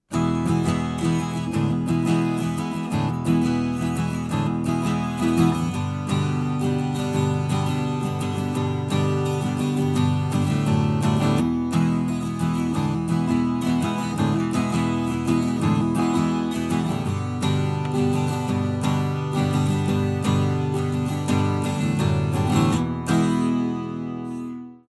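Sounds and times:
guitar through a Kugel preamp: 0:00.0 - 0:24.8.

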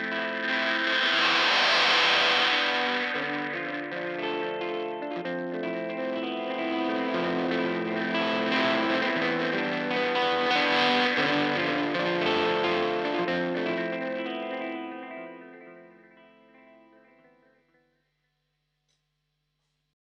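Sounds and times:
delay effect: 0:00.0 - 0:15.0.

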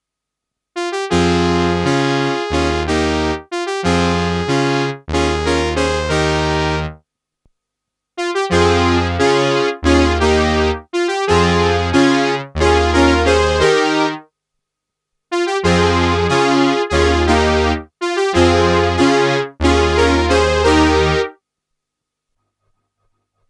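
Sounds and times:
Roland Juno-60 mono brass synthesizer: 0:00.8 - 0:07.0, 0:08.2 - 0:14.2, 0:15.3 - 0:21.4.

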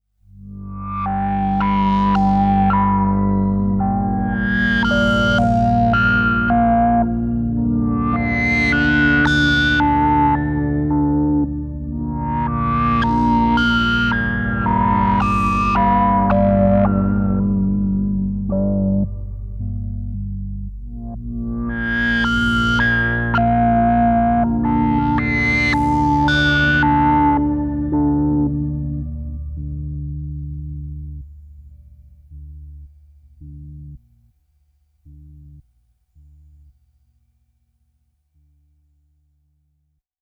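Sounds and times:
synth pad: 0:00.4 - 0:31.3.

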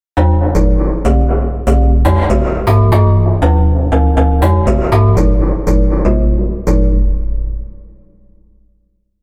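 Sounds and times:
SQ80 synthesizer strange sequence with reverb: 0:00.2 - 0:08.0.

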